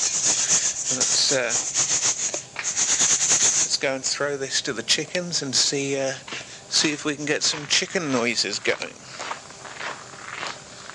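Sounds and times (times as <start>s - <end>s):
brief squeaky tonal rub: 0.0s - 3.8s
metal scoop digging into dry maize feed: 0.0s - 4.2s
speech: 0.9s - 1.9s, 3.8s - 9.2s.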